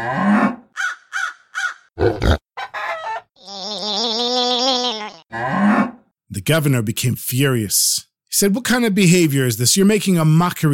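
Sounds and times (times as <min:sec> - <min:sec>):
voice imitating animal grunts and croaks: 0:00.0 - 0:00.4, 0:02.0 - 0:02.4, 0:03.4 - 0:05.7
speech: 0:06.4 - 0:10.7.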